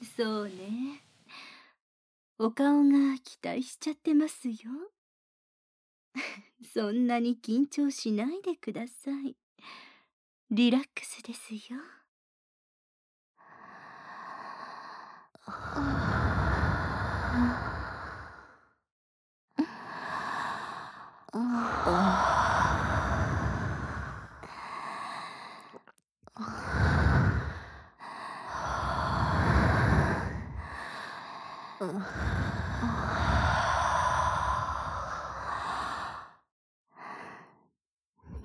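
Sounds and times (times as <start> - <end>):
speech: 0.2 - 1.1, 2.4 - 5.0, 6.2 - 9.8, 10.5 - 12.0, 15.5 - 16.2, 21.3 - 22.4, 31.8 - 33.0
warm breath blown toward the listener: 15.6 - 18.5, 21.6 - 24.6, 26.4 - 27.8, 28.6 - 31.0, 31.6 - 36.0.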